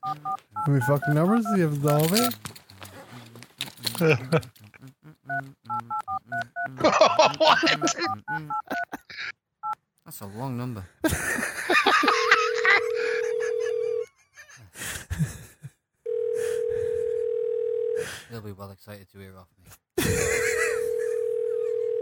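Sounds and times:
telephone ringing tone: 0.0 - 2.3, 12.0 - 14.1, 16.1 - 18.0, 20.7 - 22.0
speech: 0.1 - 2.5, 4.0 - 4.6, 6.4 - 8.7, 10.2 - 11.5, 18.9 - 20.2
laughter: 3.8 - 4.8, 6.7 - 9.3, 11.0 - 15.8, 20.0 - 21.4.

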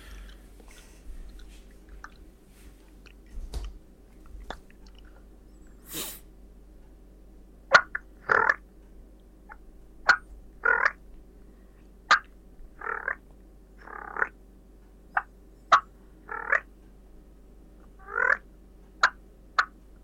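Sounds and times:
turkey purr on a diaphragm call: 7.7 - 8.6, 9.5 - 11.0, 12.1 - 13.2, 13.8 - 14.4, 15.2 - 16.7, 18.0 - 18.4.

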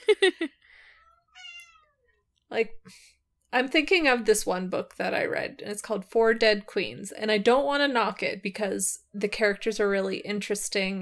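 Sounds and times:
laughter: 0.0 - 0.5
cat meowing mournfully: 1.0 - 2.1
speech: 2.5 - 11.0.

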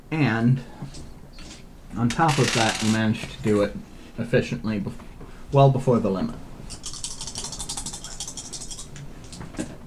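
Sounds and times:
speech: 0.1 - 1.1, 2.0 - 6.4
dice rattling: 2.2 - 3.0, 6.7 - 9.4.

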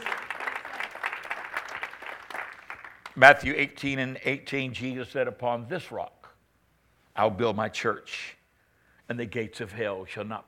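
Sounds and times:
audience hand clapping: 0.0 - 3.4
speech: 3.2 - 6.2, 7.2 - 8.4, 9.1 - 10.4.

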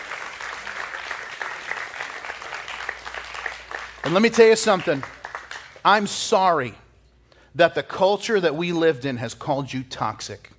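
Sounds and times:
audience applause: 0.0 - 5.8
speech: 4.0 - 5.2, 5.8 - 6.8, 7.6 - 10.5.

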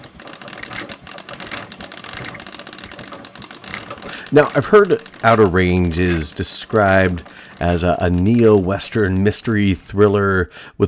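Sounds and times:
mutoscope viewer being cranked: 0.0 - 9.9
speech: 4.3 - 10.8.

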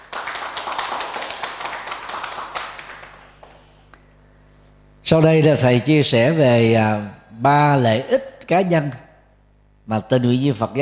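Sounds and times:
audience applause: 0.0 - 3.6
speech: 5.1 - 9.0, 9.9 - 10.8.

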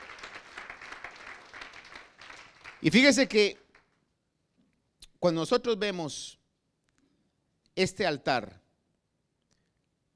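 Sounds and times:
church congregation applause during a worship service: 0.0 - 4.0
speech: 2.8 - 3.6, 5.2 - 6.4, 7.8 - 8.6.

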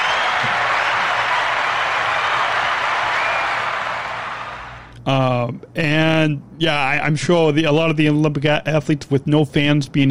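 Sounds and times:
round of applause: 0.0 - 4.9
speech: 5.0 - 10.1.

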